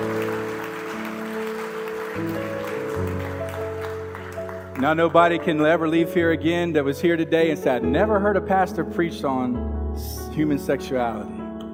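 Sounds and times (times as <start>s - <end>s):
church audience applauding: 0.0s - 6.2s
speech: 2.2s - 2.6s, 4.8s - 11.4s.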